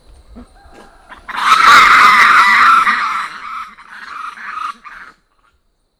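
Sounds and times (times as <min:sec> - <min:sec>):
black lemur screaming call: 0:00.1 - 0:05.2.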